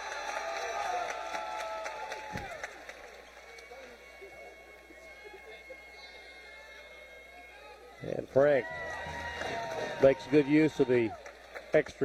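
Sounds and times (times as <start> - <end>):
applause: 0.0 - 4.4, 8.6 - 12.0
speech: 8.4 - 8.8, 10.0 - 12.0.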